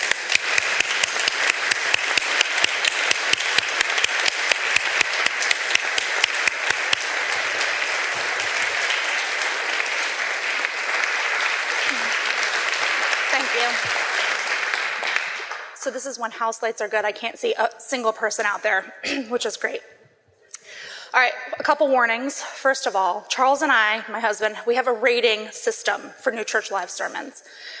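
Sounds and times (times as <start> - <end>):
audience applause welcoming a speaker onto a stage: 0.0 - 15.8
speech: 15.9 - 20.0, 21.1 - 27.7.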